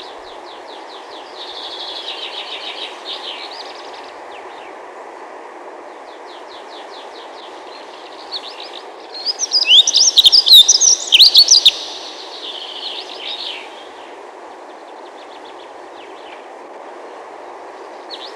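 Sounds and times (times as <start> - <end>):
dunnock singing thin notes, trills and jangling burst: 0.0 - 4.7, 6.0 - 16.4.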